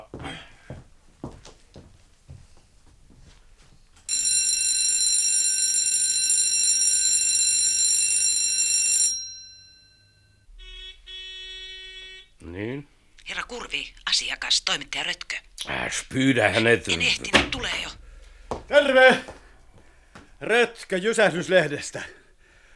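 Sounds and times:
school bell ringing: 0:04.1 - 0:12.3
speech: 0:13.5 - 0:18.0, 0:18.7 - 0:19.3, 0:20.4 - 0:22.2.

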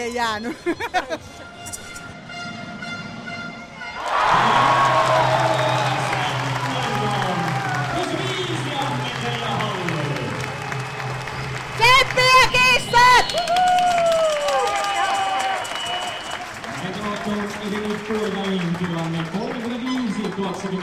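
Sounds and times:
speech: 0:00.0 - 0:01.7
laughter: 0:00.4 - 0:01.5
shouts and whoops: 0:04.0 - 0:08.1, 0:11.8 - 0:16.2
loud crowd of fans cheering: 0:04.0 - 0:20.8.

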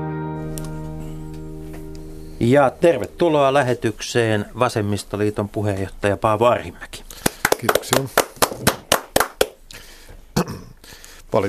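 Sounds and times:
speech: 0:02.4 - 0:08.8
two hosts clapping: 0:07.2 - 0:09.6.

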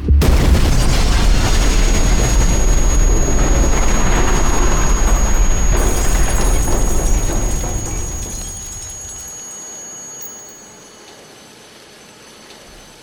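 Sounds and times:
bomb explosion inside the Myyrmanni shopping centre: 0:00.0 - 0:09.1
thin steady high whine: 0:00.0 - 0:11.6.

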